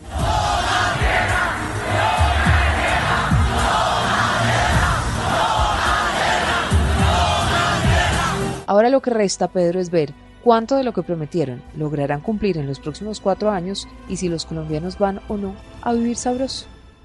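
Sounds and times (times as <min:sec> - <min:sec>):
large crowd chanting in unison: 0:00.0 - 0:08.7
speech: 0:08.8 - 0:16.7.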